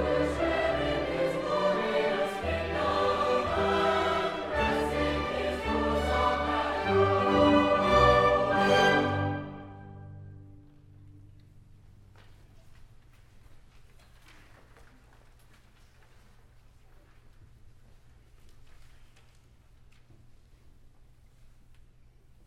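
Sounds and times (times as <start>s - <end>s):
concert choir singing Southern hymns: 0.0s - 10.4s.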